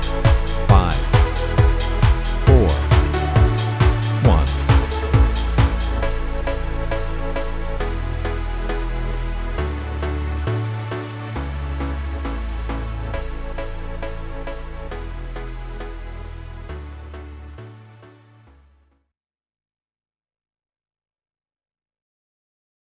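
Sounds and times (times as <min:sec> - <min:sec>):
dance music with I V IV I progression: 0:00.0 - 0:17.9.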